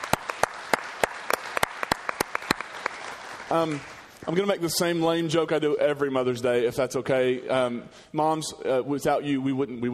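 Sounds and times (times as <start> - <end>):
audience applause: 0.0 - 4.4
speech: 3.5 - 9.9.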